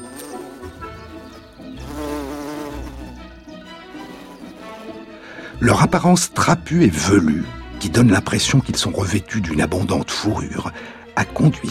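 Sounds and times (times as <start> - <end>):
bumblebee buzzing in flight: 0.0 - 5.2
speech: 5.6 - 11.7.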